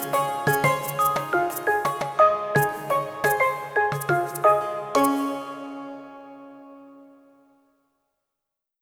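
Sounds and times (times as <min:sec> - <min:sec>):
tropical style music: 0:00.0 - 0:06.1.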